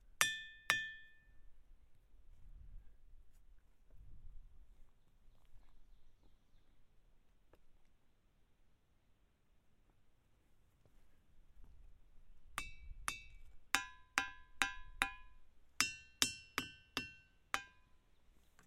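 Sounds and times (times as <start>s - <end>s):
hammer striking ringing rocks at Ringing Rock State Park: 0.2s - 1.4s, 12.6s - 17.9s.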